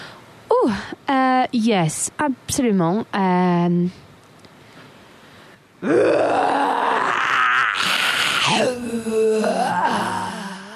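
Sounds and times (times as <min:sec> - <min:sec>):
speech: 0:00.6 - 0:04.1, 0:05.8 - 0:06.5
person imitating a bear's growl: 0:05.8 - 0:10.7.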